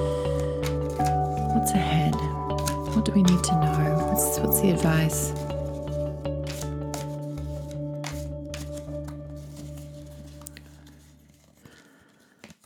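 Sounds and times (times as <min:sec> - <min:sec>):
deck of cards shuffled for a card reading: 0:00.0 - 0:12.6
speech: 0:01.7 - 0:02.1, 0:03.0 - 0:05.5.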